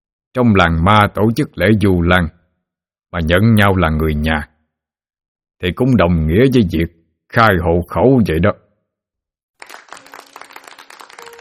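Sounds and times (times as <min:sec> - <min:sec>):
speech: 0:00.4 - 0:02.4, 0:03.1 - 0:04.5, 0:05.6 - 0:08.6
villagers applauding at a Vu Lan ceremony: 0:09.6 - 0:11.3.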